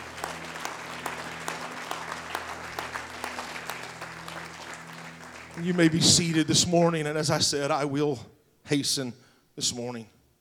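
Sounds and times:
audience clapping hands: 0.0s - 7.3s
speech: 5.6s - 10.2s.

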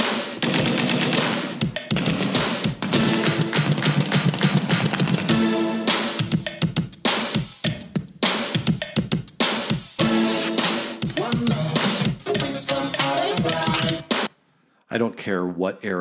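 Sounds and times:
synthesizer riffs and stabs: 0.0s - 6.4s, 10.0s - 14.3s
hip-hop track: 0.0s - 14.3s
speech: 15.0s - 15.9s.

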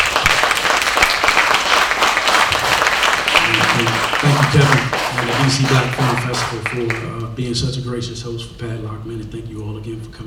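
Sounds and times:
audience applause: 0.0s - 7.2s
speech: 5.5s - 10.2s.

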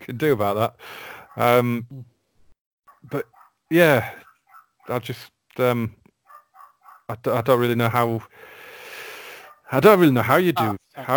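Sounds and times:
speech: 0.0s - 2.1s, 3.0s - 4.2s, 4.9s - 6.0s, 7.1s - 8.5s, 9.7s - 11.1s
dog barking in a nearby house: 2.9s - 3.6s, 4.2s - 5.0s, 6.2s - 7.1s, 9.4s - 9.8s, 10.6s - 10.8s.

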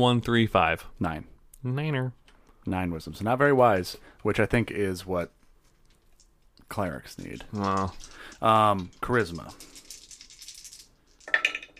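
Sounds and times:
speech: 0.0s - 5.4s, 6.7s - 9.7s
small dice rattling and clattering in a hand: 5.6s - 11.7s.

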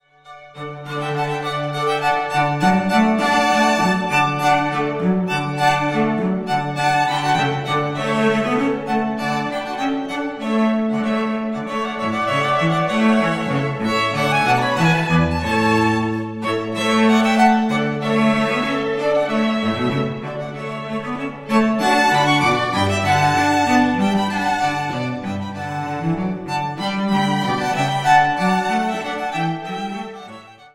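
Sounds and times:
string quartet: 0.0s - 30.7s.

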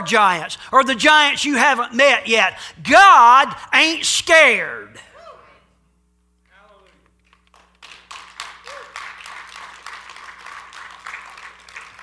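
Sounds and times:
speech: 0.0s - 5.1s
weak audience clapping: 6.7s - 12.0s.

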